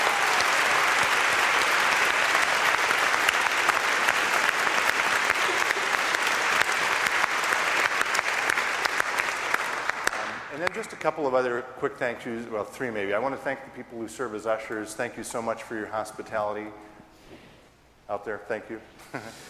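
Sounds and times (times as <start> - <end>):
large audience applause: 0.0 - 10.8
speech: 10.8 - 16.9, 18.1 - 19.4.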